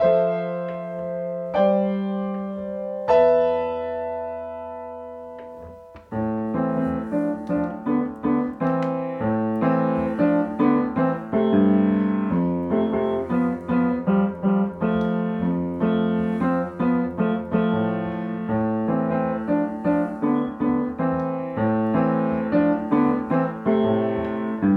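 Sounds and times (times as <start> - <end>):
solo piano: 0.0 - 24.7.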